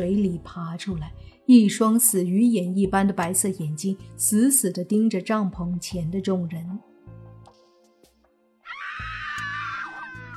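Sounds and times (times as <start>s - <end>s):
speech: 0.0s - 6.9s
girls screaming: 8.6s - 10.3s.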